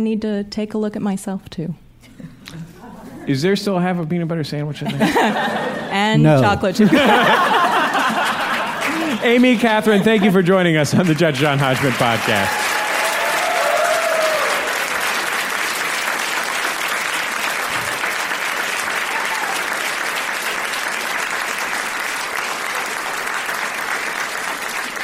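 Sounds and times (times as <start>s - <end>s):
speech: 0.0s - 1.8s, 3.2s - 7.6s, 9.2s - 12.7s
laughter: 2.2s - 3.4s, 4.8s - 12.5s
audience applause: 6.9s - 25.0s.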